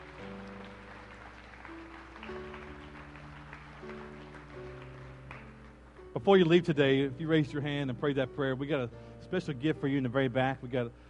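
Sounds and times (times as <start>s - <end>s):
audience applause: 0.0s - 5.9s
speech: 6.2s - 11.0s.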